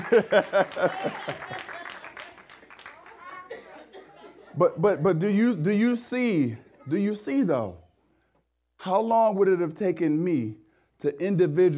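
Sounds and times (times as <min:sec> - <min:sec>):
laughter: 0:00.0 - 0:02.5, 0:03.1 - 0:05.2
audience clapping: 0:00.0 - 0:03.7
speech: 0:00.1 - 0:01.7, 0:04.6 - 0:07.8, 0:08.8 - 0:11.7.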